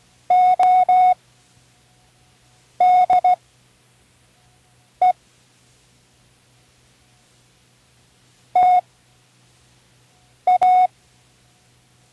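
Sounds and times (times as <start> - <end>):
Morse code spelling words: 0.3 - 1.2, 2.8 - 3.4, 8.6 - 8.8, 10.5 - 10.9.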